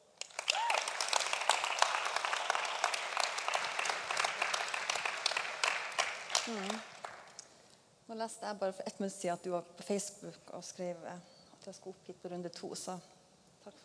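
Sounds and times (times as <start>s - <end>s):
audience applause: 0.2s - 7.3s
speech: 6.5s - 6.9s, 8.1s - 13.8s.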